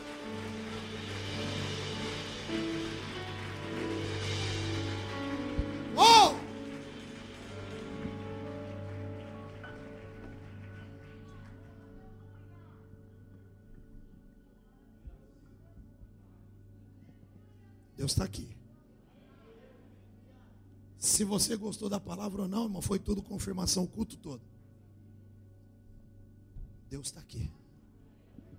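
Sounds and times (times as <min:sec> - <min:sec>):
audience applauding: 0:00.0 - 0:12.2
speech: 0:18.0 - 0:18.6, 0:21.2 - 0:24.6, 0:26.9 - 0:27.6.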